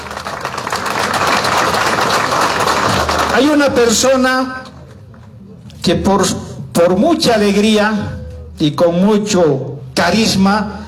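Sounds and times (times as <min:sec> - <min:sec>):
applause: 0:00.0 - 0:05.0
speech: 0:03.4 - 0:04.7, 0:05.8 - 0:10.8.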